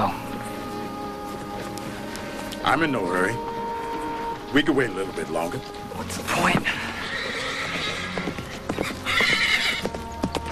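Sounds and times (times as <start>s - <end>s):
horse hooves galloping: 0.5s - 10.5s
speech: 2.6s - 3.5s, 4.5s - 6.9s
horse whinnying as it rears: 6.2s - 10.0s.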